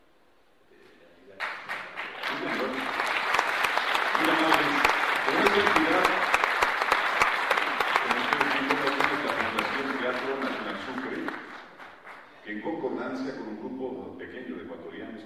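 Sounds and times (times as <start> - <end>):
audience applause: 1.4 - 12.4.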